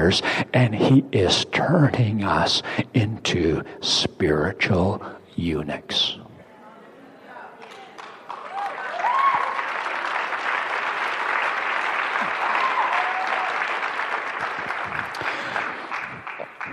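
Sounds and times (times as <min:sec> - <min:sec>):
speech: 0:00.0 - 0:06.2
audience clapping: 0:07.6 - 0:16.7
people cheering: 0:08.3 - 0:16.7.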